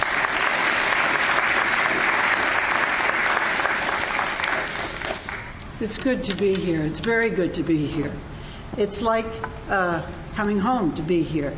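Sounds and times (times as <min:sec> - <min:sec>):
audience applause at a church gathering: 0:00.0 - 0:05.6
speech: 0:05.8 - 0:11.5.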